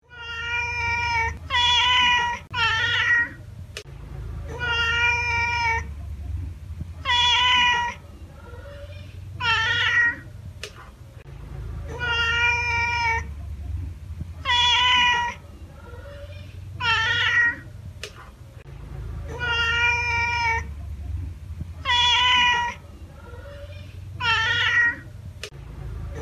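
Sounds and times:
cat meowing: 0.0 - 3.4, 4.5 - 5.9, 7.0 - 10.3, 11.9 - 13.3, 14.4 - 17.7, 19.2 - 20.8, 21.8 - 25.1.

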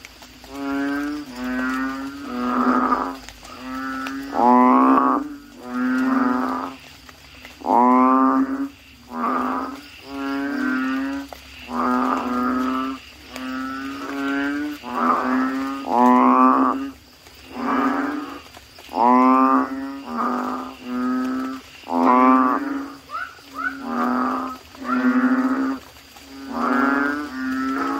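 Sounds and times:
Asian common toad chorus croaking: 0.0 - 27.9.

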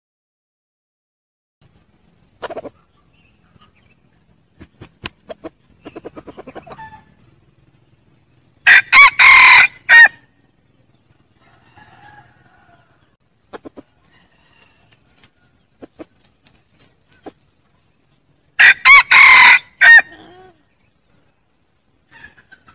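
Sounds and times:
red junglefowl crowing: 6.4 - 7.2, 8.6 - 10.3, 11.4 - 13.2, 14.0 - 15.6, 18.6 - 20.5.

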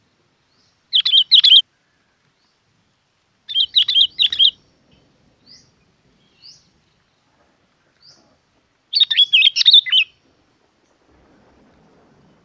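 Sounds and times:
Yellow-vented bulbul bubbly chirping song: 3.5 - 4.6, 8.9 - 10.1.

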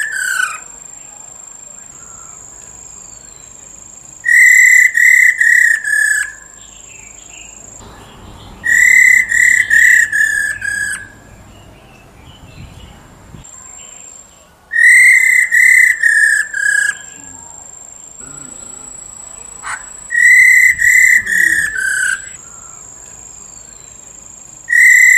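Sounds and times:
Black-throated laughingthrush whistling: 4.2 - 6.6, 8.0 - 11.5, 14.7 - 23.8, 24.7 - 25.1.

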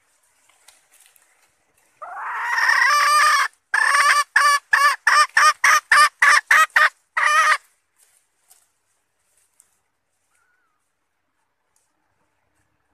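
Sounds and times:
red junglefowl hen clucking: 2.0 - 7.7.

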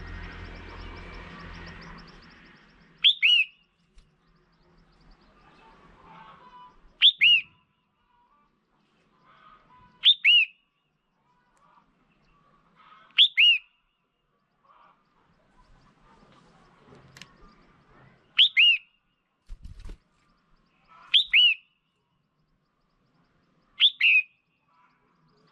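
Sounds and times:
red-whiskered bulbul whistling: 0.0 - 3.7, 7.0 - 7.6, 13.2 - 13.7, 18.4 - 18.9, 21.1 - 21.6, 23.8 - 24.3
faint chirps: 0.0 - 25.5.

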